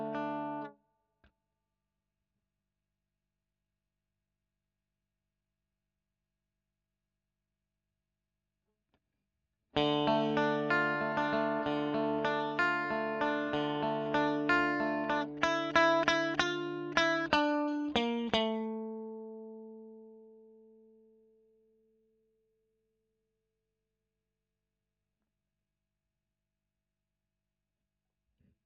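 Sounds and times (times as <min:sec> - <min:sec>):
electric guitar: 0:00.0 - 0:00.7, 0:09.8 - 0:21.1.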